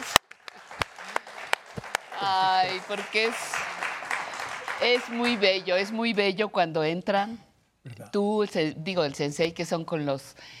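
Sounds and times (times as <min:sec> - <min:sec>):
audience applause: 0:00.0 - 0:05.9
speech: 0:02.2 - 0:03.6, 0:04.8 - 0:10.5.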